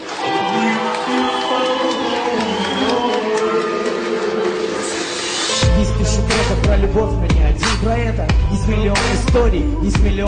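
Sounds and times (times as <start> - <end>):
audience applause: 0.0 - 5.6
speech: 6.9 - 10.2.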